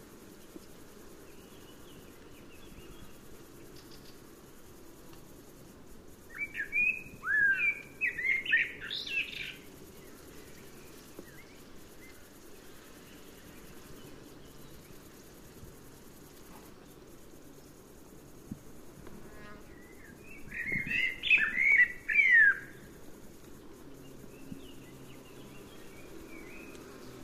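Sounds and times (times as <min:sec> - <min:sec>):
Blackbird song: 0:06.3 - 0:09.6, 0:20.3 - 0:22.8.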